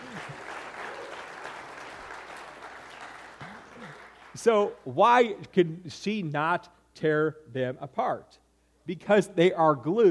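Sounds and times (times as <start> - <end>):
applause: 0.0 - 4.5
speech: 4.4 - 10.0.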